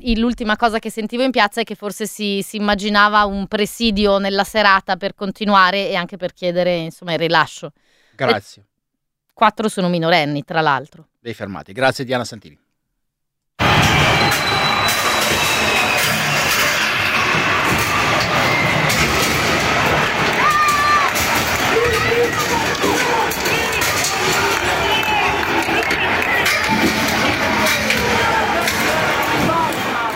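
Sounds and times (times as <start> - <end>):
speech: 0.0 - 8.7, 9.4 - 12.6
protesters' crowd commotion at a central train station: 13.6 - 30.1.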